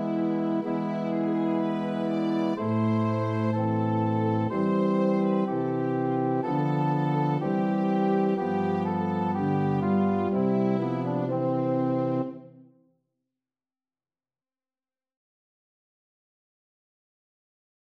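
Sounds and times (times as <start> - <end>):
organ playing hymn: 0.0 - 12.4.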